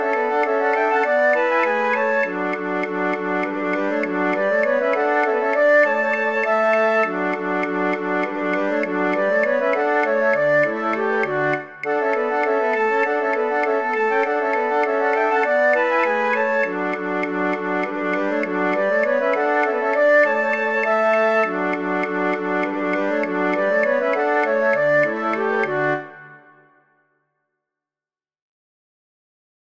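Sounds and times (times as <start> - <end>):
flute choir playing all parts as practice tracks: 0.0 - 26.8.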